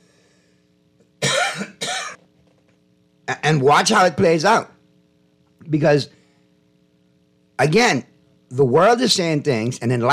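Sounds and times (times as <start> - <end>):
harsh coughs from one person: 1.2 - 2.3
speech: 1.6 - 1.8, 3.4 - 4.7, 5.7 - 6.2, 7.6 - 10.1.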